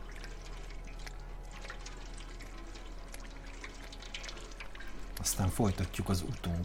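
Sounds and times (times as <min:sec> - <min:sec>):
cat drinking water: 0:00.0 - 0:06.6
speech: 0:05.2 - 0:06.6.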